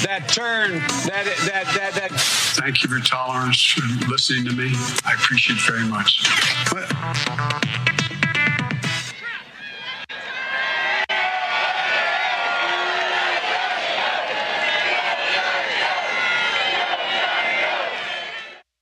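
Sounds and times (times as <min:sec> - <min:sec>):
speech: 0:00.1 - 0:07.9
rally crowd chanting: 0:09.1 - 0:18.6.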